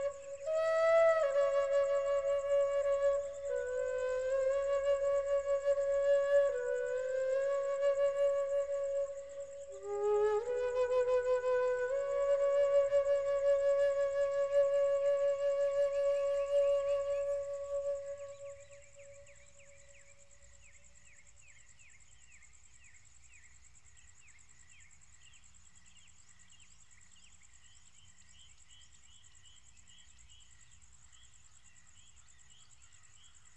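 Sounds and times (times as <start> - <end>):
flute: 0.0 - 20.3.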